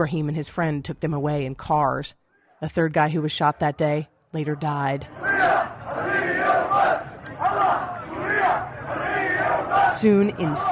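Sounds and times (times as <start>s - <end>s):
speech: 0.0s - 5.7s, 9.9s - 10.7s
protest crowd chanting in the streets: 4.5s - 10.7s.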